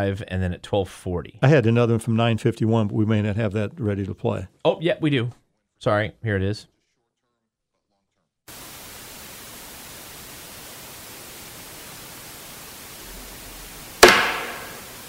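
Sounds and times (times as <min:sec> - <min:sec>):
speech: 0:00.0 - 0:06.7
static hiss: 0:08.5 - 0:15.0
knock on wood: 0:14.0 - 0:15.0.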